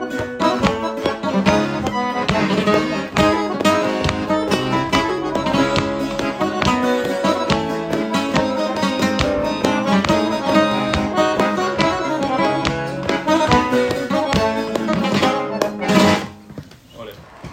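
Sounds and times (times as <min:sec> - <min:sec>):
flamenco guitar falseta in tangos style: 0:00.0 - 0:16.5.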